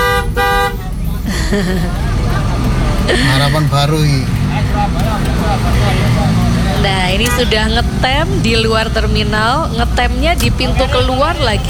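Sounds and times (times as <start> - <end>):
brassy bus horn blasts: 0.0 - 1.0, 4.7 - 11.6
steady heavy bus engine rumble: 0.0 - 11.6
laughter: 0.8 - 11.6
speech: 1.5 - 2.1, 3.1 - 11.6.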